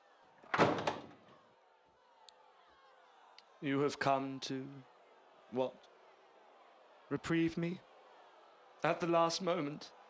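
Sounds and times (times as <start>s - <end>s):
door shutting with a thud: 0.4s - 1.3s
speech: 3.6s - 4.9s, 5.5s - 5.9s, 7.1s - 7.9s, 8.8s - 10.0s.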